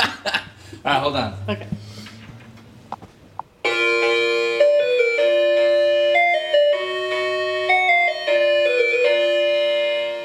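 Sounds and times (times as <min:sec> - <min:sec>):
speech: 0:00.9 - 0:01.8
musical doorbell playing a song: 0:03.6 - 0:10.2.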